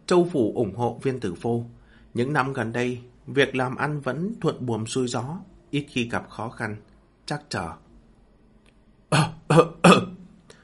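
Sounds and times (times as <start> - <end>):
speech: 0.1 - 7.8, 9.1 - 10.0
faint trailing breath: 1.7 - 2.2, 10.4 - 10.6
harsh dry coughs: 9.1 - 10.2.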